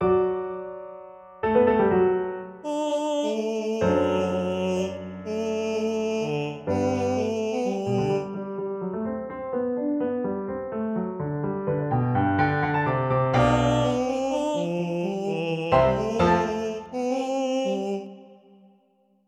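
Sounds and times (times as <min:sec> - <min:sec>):
pianoforte: 0:00.0 - 0:18.2.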